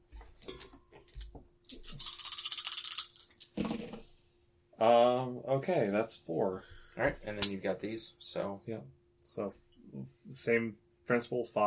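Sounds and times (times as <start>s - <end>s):
dice being rolled: 1.0s - 3.8s
speech: 4.8s - 11.6s.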